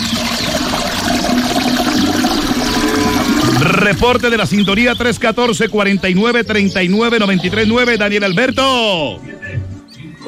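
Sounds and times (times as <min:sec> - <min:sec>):
toilet flushing and tank refilling: 0:00.0 - 0:05.1
speech: 0:03.9 - 0:09.4.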